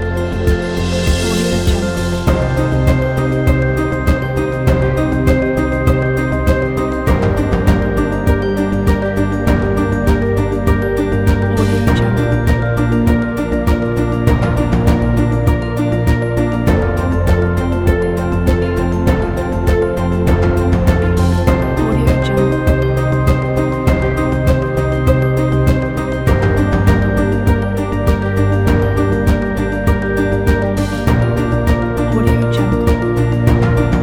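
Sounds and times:
inspirational Christmas cinematic uplifting music: 0:00.0 - 0:34.0.

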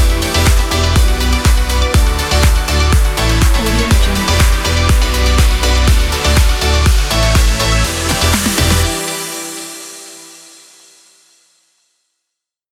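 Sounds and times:
fun summer dance party music: 0:00.6 - 0:09.0.

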